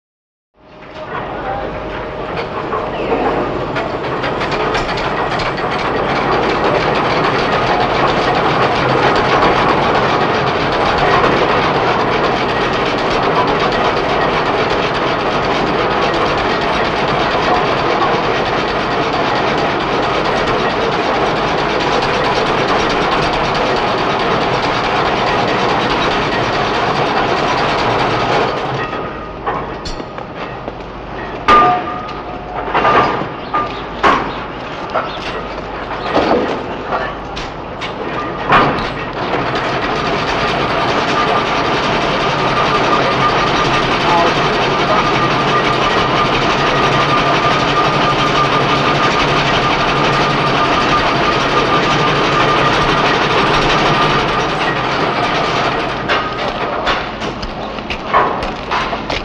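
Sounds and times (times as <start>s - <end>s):
heavy factory ambience: 0.6s - 59.2s.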